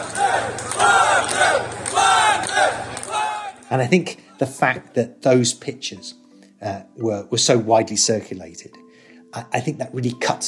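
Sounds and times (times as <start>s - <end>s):
Russians cheering Prigozhin: 0.0s - 3.7s
speech: 3.7s - 10.4s.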